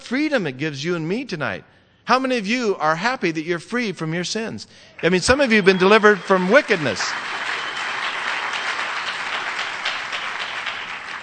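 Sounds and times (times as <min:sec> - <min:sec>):
speech: 0:00.1 - 0:07.5
audience clapping: 0:05.0 - 0:11.2.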